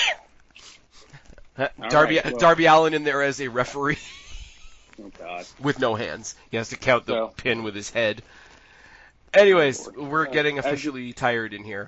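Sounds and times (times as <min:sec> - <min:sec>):
person sneezing: 0:00.0 - 0:01.1
speech: 0:01.6 - 0:04.2, 0:05.0 - 0:08.4, 0:09.3 - 0:11.8.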